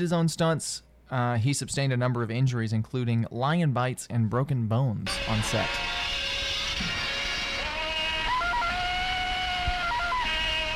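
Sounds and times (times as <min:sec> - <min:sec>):
speech: 0:00.0 - 0:06.2
jungle hero's yodeling yell: 0:06.7 - 0:10.7.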